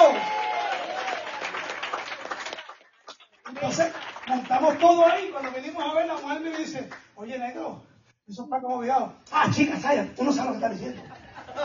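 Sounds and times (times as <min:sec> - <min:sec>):
audience applause: 0:00.0 - 0:05.8
speech: 0:03.6 - 0:11.6.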